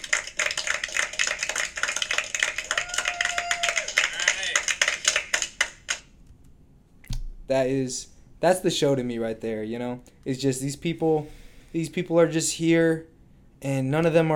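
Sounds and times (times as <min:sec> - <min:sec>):
clapping: 0:00.0 - 0:06.1
speech: 0:07.5 - 0:14.3.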